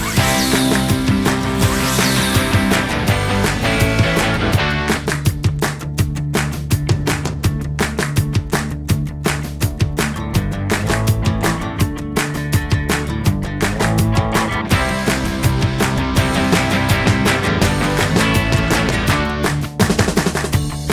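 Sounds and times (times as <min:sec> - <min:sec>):
music: 0:00.0 - 0:20.9.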